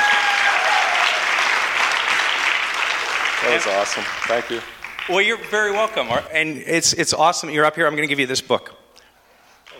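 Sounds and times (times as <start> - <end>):
audience applause: 0.0 - 6.3
speech: 3.5 - 8.8.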